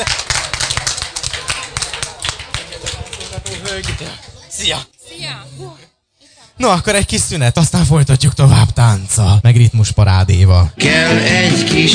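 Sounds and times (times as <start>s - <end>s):
group applauding themselves: 0.0s - 4.2s
speech: 3.7s - 5.9s, 6.6s - 11.9s.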